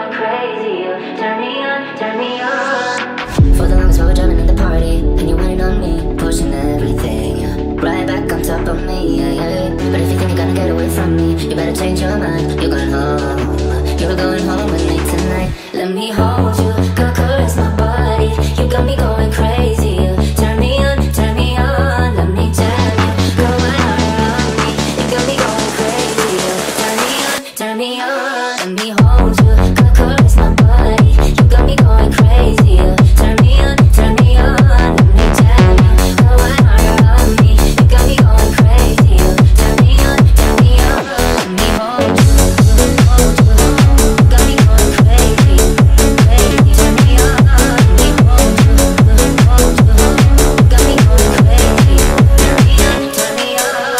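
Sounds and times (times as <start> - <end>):
techno remix: 0.2 - 27.4, 29.0 - 53.9.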